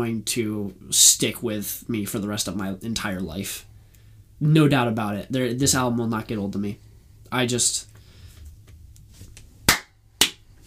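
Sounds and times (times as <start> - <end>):
speech: 0.0 - 3.7, 4.4 - 7.9
slow hand clap: 9.7 - 10.4.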